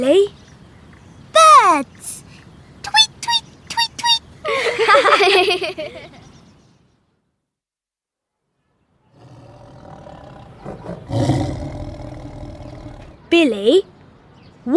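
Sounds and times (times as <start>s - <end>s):
speech: 0.0s - 0.4s, 1.7s - 2.2s, 4.9s - 6.2s, 13.3s - 13.9s
laughter: 4.4s - 6.2s
tigers roaring: 9.1s - 13.2s.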